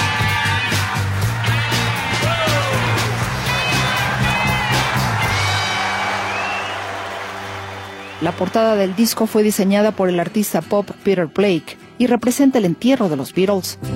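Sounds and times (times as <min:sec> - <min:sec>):
scattered whistles and cheers: 0:00.0 - 0:09.6
audience applauding at concert: 0:00.0 - 0:10.2
speech: 0:08.2 - 0:13.9.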